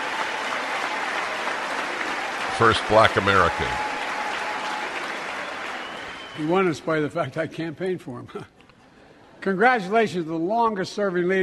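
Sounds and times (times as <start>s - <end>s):
massive cheering and applause in chamber for Hakeem Jeffries: 0.0s - 6.5s
speech: 2.6s - 3.9s, 6.4s - 8.5s, 9.4s - 11.4s.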